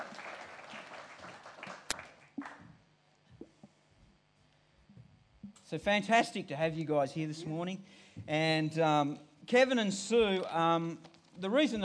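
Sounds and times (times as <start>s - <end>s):
audience clapping to welcome guests: 0.0s - 2.8s
speech: 5.7s - 11.8s.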